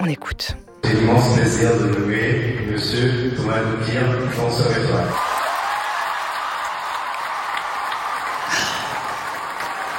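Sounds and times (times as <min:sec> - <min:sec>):
speech: 0:00.0 - 0:05.4
applause at the Paris Opera after a dancer's étoile nomination: 0:05.0 - 0:09.9.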